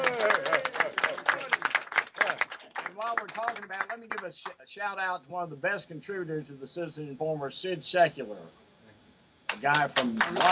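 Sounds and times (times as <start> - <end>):
audience clapping: 0.0 - 4.6, 9.5 - 10.5
speech: 4.2 - 8.6, 9.6 - 10.5.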